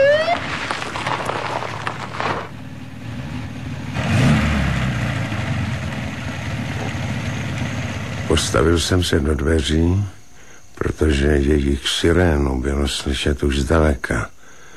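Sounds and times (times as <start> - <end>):
black-green Mercedes 220 car arriving and stopping: 0.0 - 9.6
speech: 8.4 - 10.2, 11.0 - 14.3.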